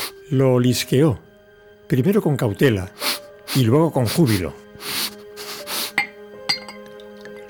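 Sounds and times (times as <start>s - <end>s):
speech: 0.3s - 1.3s, 1.9s - 3.0s, 3.6s - 4.6s
brandy poured into a glass: 6.5s - 7.4s.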